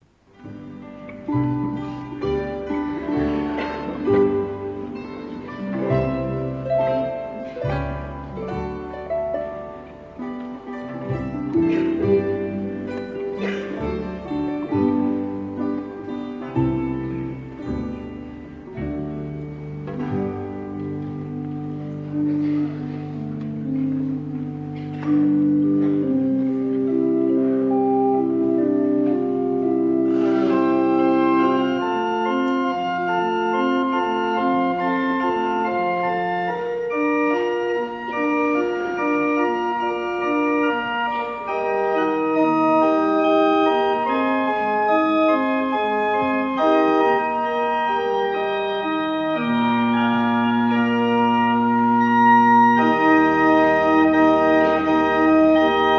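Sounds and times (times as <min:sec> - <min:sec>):
organ: 0:00.2 - 0:55.9.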